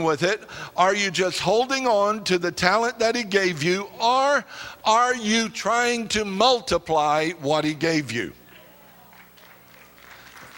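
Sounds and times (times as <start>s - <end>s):
speech: 0.0s - 8.4s
weak audience clapping: 8.5s - 10.5s.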